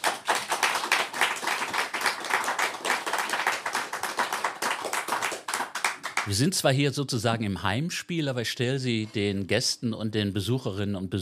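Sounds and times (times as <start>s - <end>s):
audience applause: 0.0s - 6.5s
speech: 6.3s - 11.1s.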